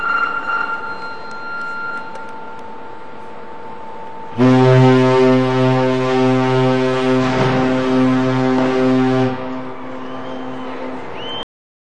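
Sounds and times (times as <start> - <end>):
various alarms on a surface ship during an alarm test: 0.0 - 11.4.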